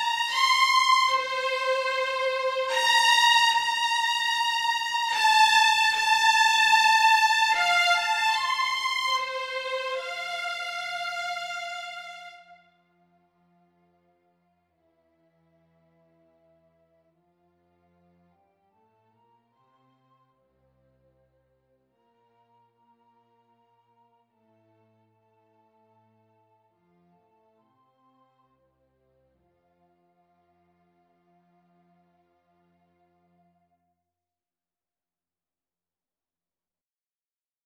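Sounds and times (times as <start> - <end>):
second violin part: 0.0 - 12.7.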